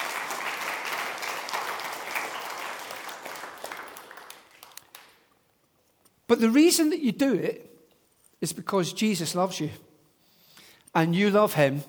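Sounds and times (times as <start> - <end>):
audience applause: 0.0 - 5.2
speech: 6.3 - 7.7, 8.4 - 9.9, 10.9 - 11.8.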